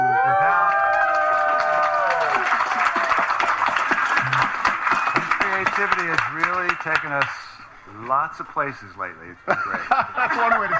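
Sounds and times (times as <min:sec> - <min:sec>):
audience cheering: 0:00.0 - 0:06.2
audience applause: 0:00.0 - 0:07.4
speech: 0:05.8 - 0:10.7
laughter: 0:09.4 - 0:10.7.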